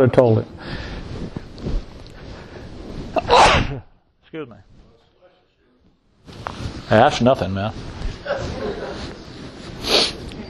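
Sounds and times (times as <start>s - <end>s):
speech: 0.0s - 0.9s, 3.2s - 4.7s, 6.9s - 9.1s
low noise: 0.0s - 10.4s
small stifled sneeze: 3.2s - 3.9s
laughter: 8.2s - 9.3s.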